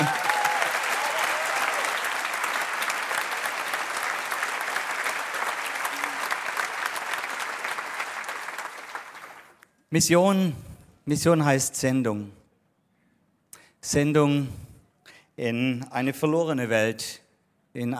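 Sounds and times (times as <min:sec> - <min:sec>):
audience clapping: 0:00.0 - 0:09.7
speech: 0:09.9 - 0:12.4, 0:13.8 - 0:14.6, 0:15.4 - 0:17.2, 0:17.8 - 0:17.9.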